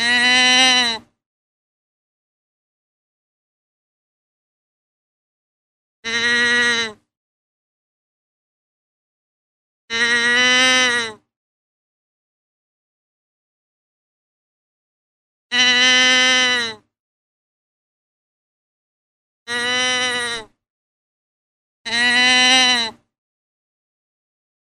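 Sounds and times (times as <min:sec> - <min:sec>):
deer bleating: 0:00.0 - 0:01.1, 0:06.1 - 0:07.0, 0:09.9 - 0:11.2, 0:15.5 - 0:16.8, 0:19.5 - 0:20.5, 0:21.9 - 0:23.0.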